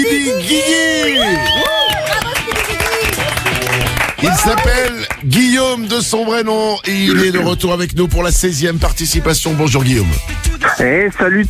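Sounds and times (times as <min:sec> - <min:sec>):
speech: 0:00.2 - 0:00.9, 0:04.4 - 0:11.4
audience applause: 0:00.7 - 0:05.4.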